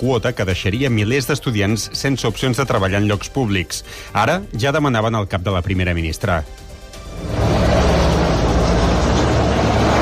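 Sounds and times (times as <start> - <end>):
speech: 0.0 - 7.5
helicopter flying: 6.8 - 9.9.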